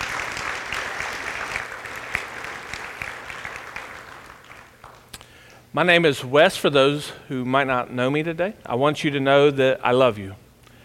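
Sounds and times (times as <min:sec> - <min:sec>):
audience applause for worship team: 0:00.0 - 0:05.2
speech: 0:05.8 - 0:10.4.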